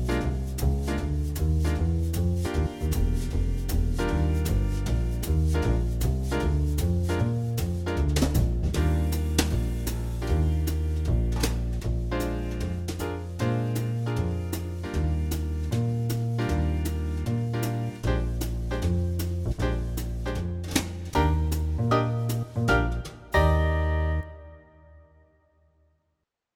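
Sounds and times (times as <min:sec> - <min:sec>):
music track in E-flat major: 0:00.0 - 0:25.5.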